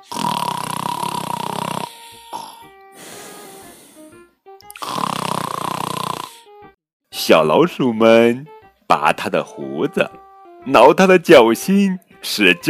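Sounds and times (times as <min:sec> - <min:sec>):
loud rumbling snoring: 0:00.0 - 0:06.5
speech: 0:07.3 - 0:12.6.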